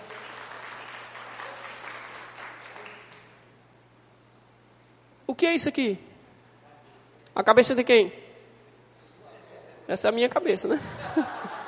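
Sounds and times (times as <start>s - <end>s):
audience clapping hands: 0.0s - 3.4s
speech: 5.3s - 6.1s, 7.4s - 8.2s, 9.9s - 11.6s
laughter: 10.7s - 11.6s.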